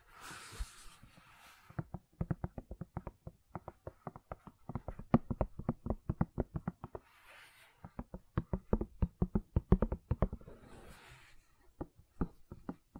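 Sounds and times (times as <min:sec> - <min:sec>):
soft taps and clicks on silicone: 0:00.9 - 0:10.8, 0:11.6 - 0:12.9.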